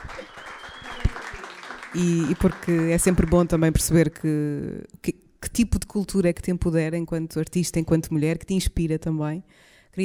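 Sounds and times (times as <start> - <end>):
audience applause: 0.0 - 3.8
speech: 2.0 - 10.0.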